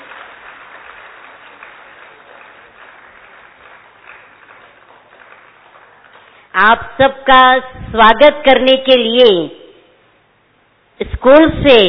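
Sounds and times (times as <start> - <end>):
audience applause for child performers: 0.0 - 6.5
speech: 6.6 - 9.6, 11.0 - 11.8.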